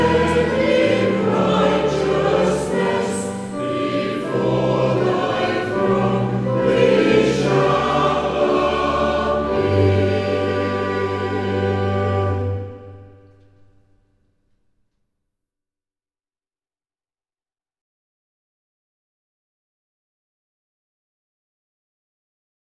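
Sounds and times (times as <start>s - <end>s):
choir singing hymns: 0.0s - 13.4s.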